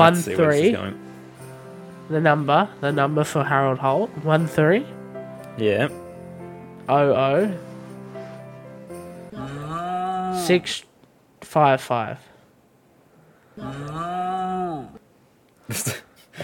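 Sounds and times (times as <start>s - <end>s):
speech: 0.0s - 1.0s, 2.1s - 5.0s, 5.6s - 6.0s, 6.9s - 7.7s, 10.4s - 10.9s, 11.5s - 12.3s, 13.6s - 15.0s, 15.7s - 16.4s
person imitating a snore, soundboard clip: 9.3s - 10.5s, 13.6s - 15.0s.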